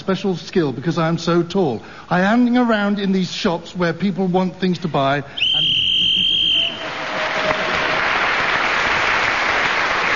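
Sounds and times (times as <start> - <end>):
speech: 0.0 - 5.8
whistle blast marking end of speaking turn: 5.4 - 7.0
audience applause: 6.3 - 10.1.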